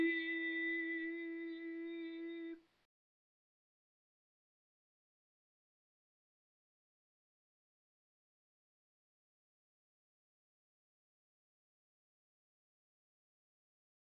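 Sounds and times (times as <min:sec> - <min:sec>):
solo lullaby: 0:00.0 - 0:02.6.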